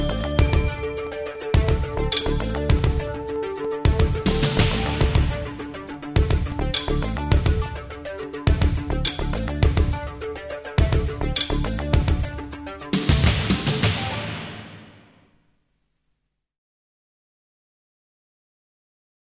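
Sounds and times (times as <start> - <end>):
filler rhythm: 0.0 - 15.1.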